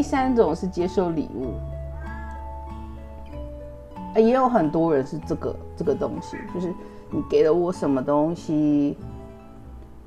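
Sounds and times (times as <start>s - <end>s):
speech: 0.0s - 1.8s, 4.2s - 9.1s
cat meowing in a drawn-out whiny tone: 1.9s - 2.5s.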